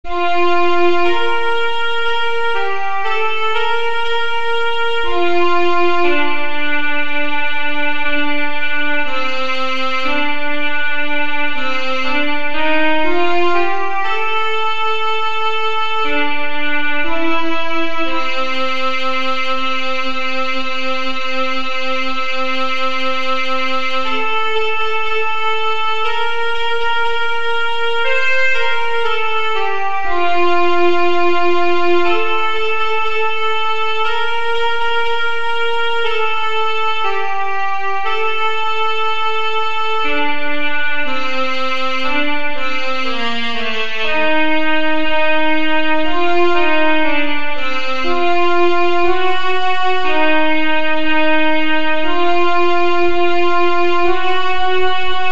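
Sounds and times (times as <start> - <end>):
alto saxophone: 0.0 - 55.3.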